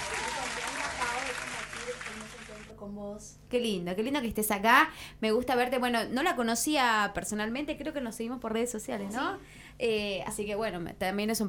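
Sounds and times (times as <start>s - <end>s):
applause sound effect: 0.0s - 2.7s
speech: 3.2s - 11.4s.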